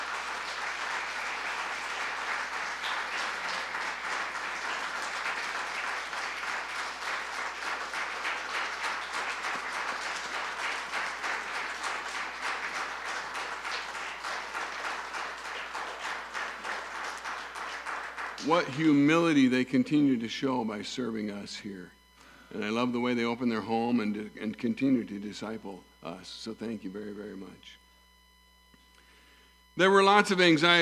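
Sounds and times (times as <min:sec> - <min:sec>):
audience applause: 0:00.0 - 0:19.2
speech: 0:18.5 - 0:27.8, 0:29.8 - 0:30.7.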